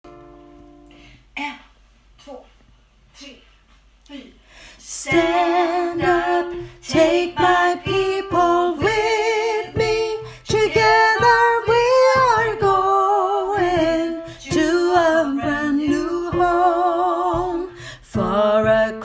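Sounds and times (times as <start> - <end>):
soprano voice: 0.2 - 19.0.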